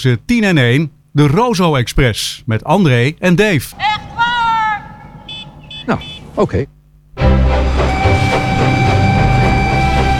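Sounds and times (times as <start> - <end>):
speech: 0.0 - 4.0, 5.9 - 7.8
train running on rails: 3.8 - 5.7, 7.2 - 10.1.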